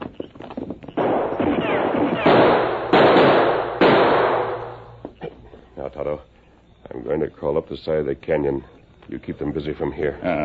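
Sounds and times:
gunshots fired from behind a large rock in a canyon: 0:01.0 - 0:05.0
speech: 0:07.1 - 0:10.4.

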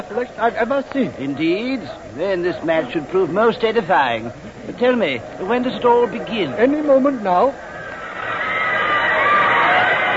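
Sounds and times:
speech: 0:00.1 - 0:07.7
crowd cheering the Yale team at a match: 0:05.1 - 0:10.1.

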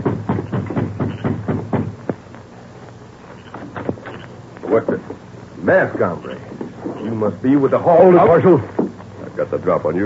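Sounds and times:
knocking on a front door: 0:00.0 - 0:02.0
speech: 0:04.7 - 0:05.1, 0:05.7 - 0:08.8, 0:09.4 - 0:10.0.

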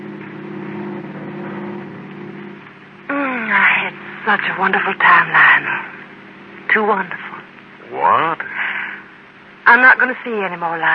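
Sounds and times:
loud tonal sound: 0:00.0 - 0:07.4
car driving home at night in a radio drama: 0:00.0 - 0:09.5
speech: 0:03.5 - 0:06.0, 0:06.8 - 0:07.2, 0:07.9 - 0:08.5, 0:09.6 - 0:10.9.

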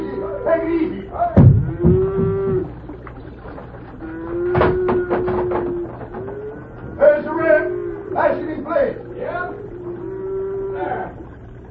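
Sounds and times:
cow mooing as a herd of cattle is driven down to a bridge: 0:00.0 - 0:02.8, 0:04.0 - 0:11.6
speech: 0:00.4 - 0:02.0.

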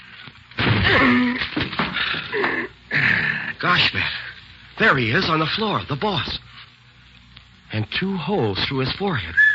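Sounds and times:
door being broken down with a chair: 0:00.5 - 0:02.1
speech: 0:03.6 - 0:04.2, 0:04.8 - 0:06.4, 0:07.7 - 0:09.4.

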